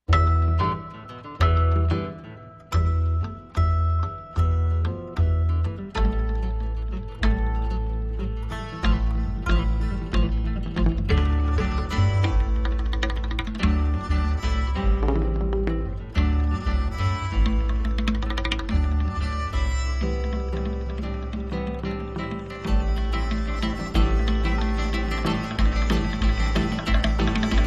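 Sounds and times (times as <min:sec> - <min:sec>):
instrumental music: 0:00.0 - 0:27.6.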